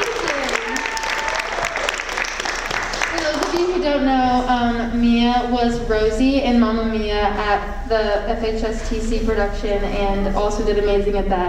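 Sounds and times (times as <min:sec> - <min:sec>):
audience applause at an open mic night: 0:00.0 - 0:03.8
speech: 0:03.8 - 0:11.4.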